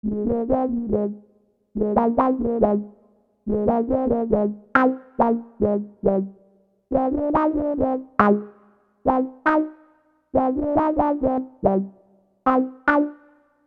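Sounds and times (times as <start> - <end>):
soul keyboard: 0.0 - 13.4.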